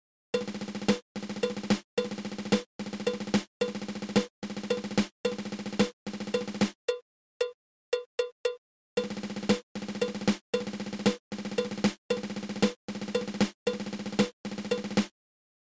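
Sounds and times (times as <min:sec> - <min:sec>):
nine stroke drum roll: 0:00.4 - 0:06.8, 0:09.0 - 0:15.1.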